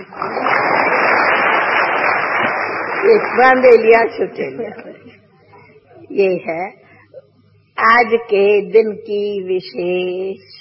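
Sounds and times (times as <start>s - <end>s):
crowd clapping: 0.0s - 3.9s
speech: 3.1s - 5.2s, 6.1s - 6.8s, 7.8s - 10.5s.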